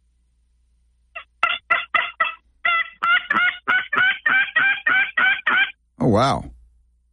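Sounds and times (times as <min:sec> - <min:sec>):
raspy yelps from a turkey tube call played by a hunter: 0:01.2 - 0:05.8
speech: 0:06.0 - 0:06.5.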